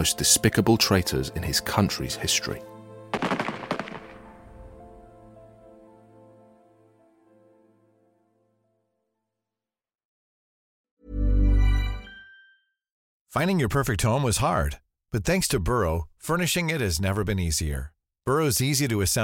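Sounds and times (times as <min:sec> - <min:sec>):
speech: 0:00.0 - 0:03.4, 0:13.4 - 0:19.2
firing squad volley of gunshots: 0:03.1 - 0:04.4.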